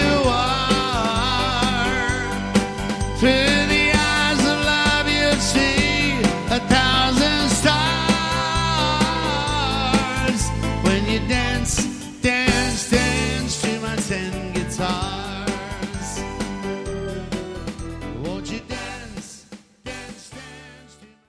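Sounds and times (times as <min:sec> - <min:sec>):
country guitars: 0:00.0 - 0:19.1.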